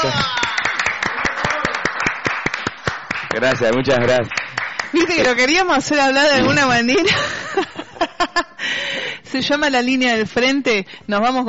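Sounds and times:
audience applauding for a guest: 0.0s - 5.8s
speech: 3.4s - 7.7s, 9.3s - 11.4s.

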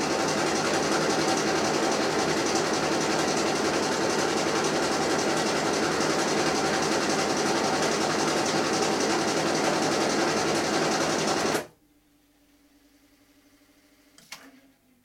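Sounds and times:
printing machine running in a print shop: 0.0s - 11.7s.

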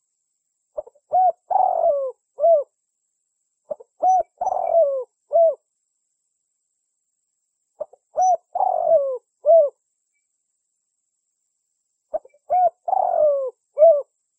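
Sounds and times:
spotted dove cooing lure call: 0.8s - 2.7s, 3.7s - 5.6s, 7.8s - 9.8s, 12.1s - 14.1s.

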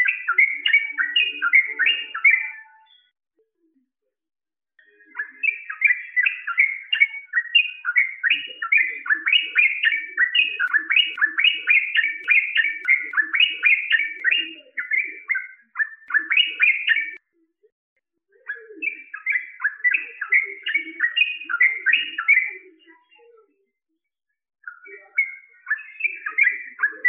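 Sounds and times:
bird whistling song: 0.0s - 3.1s, 4.8s - 17.2s, 18.4s - 23.2s, 24.6s - 27.0s.

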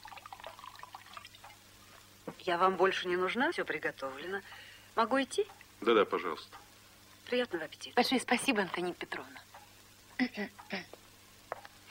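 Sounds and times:
housekeeper pouring white wine into a glass at a dining table: 0.0s - 1.5s
speech: 2.3s - 6.7s, 7.3s - 9.5s, 10.2s - 11.0s.

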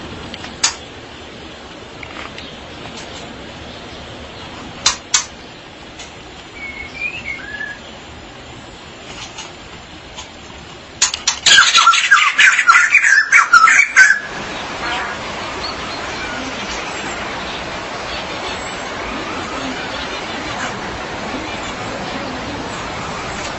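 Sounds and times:
magpie-robin or shama song: 6.6s - 7.9s, 11.3s - 20.8s.

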